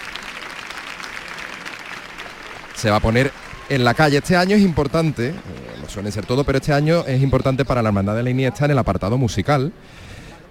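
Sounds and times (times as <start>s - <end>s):
crowd applauding at a religious procession of the Hermandad de la Iniesta: 0.0s - 8.2s
speech: 2.8s - 10.5s.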